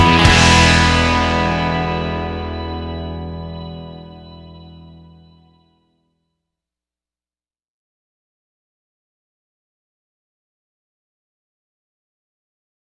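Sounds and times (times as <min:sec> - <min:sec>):
blues double stops in E: 0:00.0 - 0:05.4.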